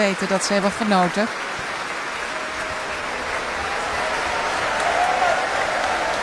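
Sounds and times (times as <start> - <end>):
speech: 0.0 - 1.7
concert audience applauding the oboe and clarinet soloists: 0.0 - 6.2.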